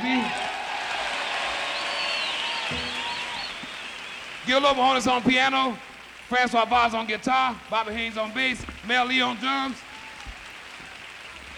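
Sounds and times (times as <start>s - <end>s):
audience applause: 0.0s - 5.8s, 9.6s - 11.5s
speech: 4.5s - 9.8s.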